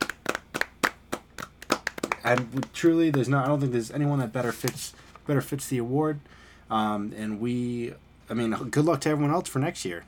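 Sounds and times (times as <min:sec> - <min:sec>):
small audience clapping: 0:00.0 - 0:03.6
speech: 0:02.3 - 0:10.0.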